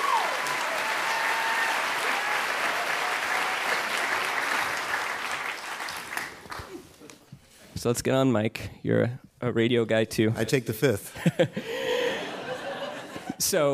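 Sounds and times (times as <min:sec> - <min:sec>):
audience applause welcoming a guest: 0:00.0 - 0:06.9
speech: 0:07.8 - 0:11.8, 0:13.4 - 0:13.7
laughter: 0:11.1 - 0:13.4.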